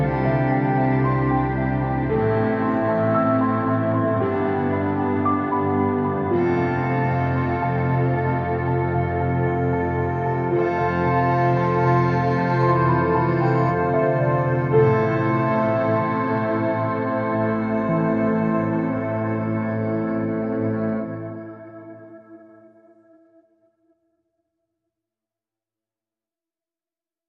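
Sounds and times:
orchestra: 0.0s - 21.6s.

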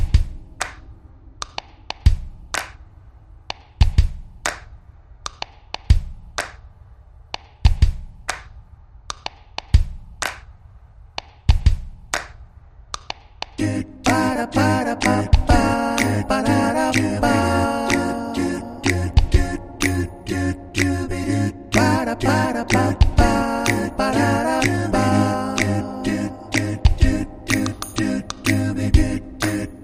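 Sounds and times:
vocals: 0.0s - 0.4s, 13.6s - 29.8s
drums: 0.0s - 0.9s, 1.5s - 2.8s, 3.6s - 4.8s, 5.4s - 6.7s, 7.4s - 8.6s, 9.2s - 10.6s, 11.3s - 12.4s, 15.0s - 16.3s, 18.8s - 20.0s, 22.7s - 25.8s, 26.5s - 29.8s.

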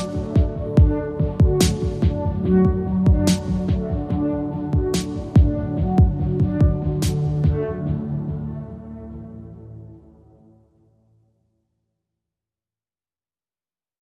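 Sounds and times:
drums: 0.0s - 7.8s.

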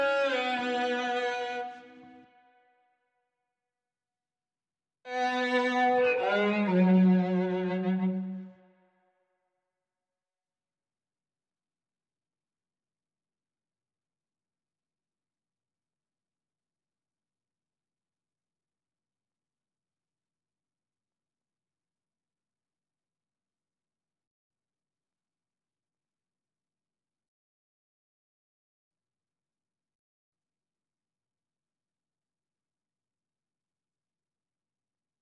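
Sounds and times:
cello: 0.0s - 2.3s, 5.1s - 8.8s.

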